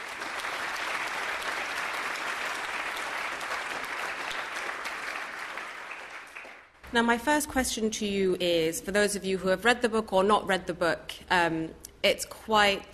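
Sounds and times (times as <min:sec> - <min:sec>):
audience applause welcoming an author at a book talk: 0:00.0 - 0:06.8
speech: 0:06.9 - 0:12.9.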